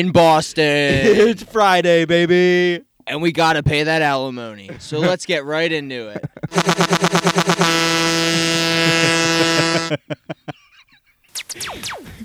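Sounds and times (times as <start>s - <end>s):
laughter: 0.0s - 1.6s, 4.3s - 12.2s
speech: 0.0s - 8.0s, 9.9s - 10.6s, 11.4s - 12.2s
truck air horn sound effect: 6.5s - 10.0s.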